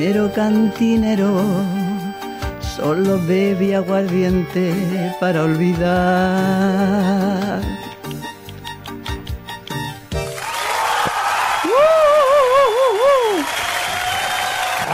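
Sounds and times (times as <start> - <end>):
speech: 0.0 - 1.8, 2.8 - 7.9
applause: 10.3 - 14.9.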